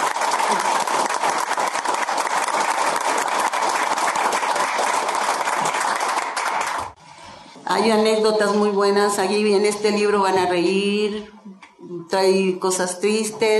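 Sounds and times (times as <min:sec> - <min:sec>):
audience applause: 0:00.0 - 0:07.0
speech: 0:07.8 - 0:11.4, 0:12.1 - 0:13.5.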